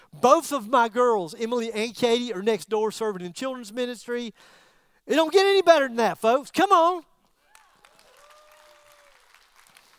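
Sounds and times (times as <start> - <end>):
speech: 0.1 - 7.1
audience applauding: 7.5 - 9.9.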